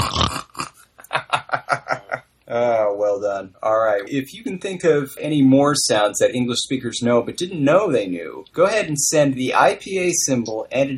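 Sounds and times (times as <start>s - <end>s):
person imitating pig snorts with nasal ingressive velar trill: 0.0s - 1.0s
laughter: 1.0s - 2.2s
speech: 2.5s - 10.9s.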